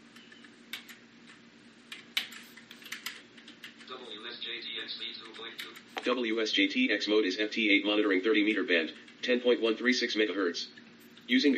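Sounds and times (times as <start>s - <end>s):
computer keyboard typing: 0.2s - 4.0s, 5.2s - 6.1s
speech: 4.3s - 11.5s.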